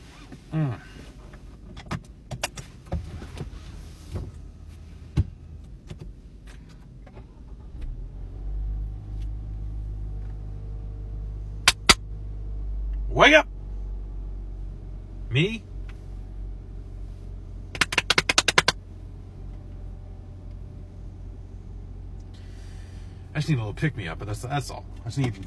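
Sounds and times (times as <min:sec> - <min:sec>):
car engine rumbling as the car drives: 0:00.0 - 0:25.4
speech: 0:00.3 - 0:01.1, 0:15.4 - 0:15.7, 0:23.4 - 0:25.4
sharp clicks: 0:11.7 - 0:12.0, 0:17.8 - 0:18.8.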